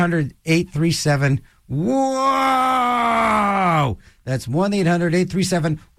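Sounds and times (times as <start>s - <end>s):
speech: 0.0s - 5.9s
person groaning going down a roller coaster: 1.8s - 3.9s.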